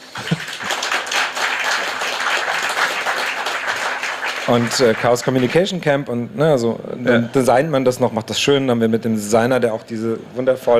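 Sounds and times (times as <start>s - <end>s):
audience applause: 0.0s - 5.8s
speech: 4.5s - 10.7s.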